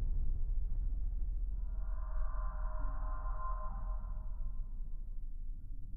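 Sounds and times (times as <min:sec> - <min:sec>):
underwater ambience: 0:00.1 - 0:05.8
ambient metal singing scrapes: 0:01.6 - 0:05.2.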